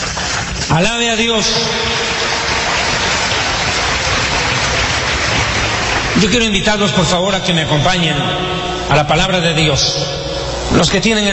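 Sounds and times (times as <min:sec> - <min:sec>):
crowd clapping: 0:00.0 - 0:07.9
speech: 0:00.7 - 0:02.0, 0:06.2 - 0:11.3.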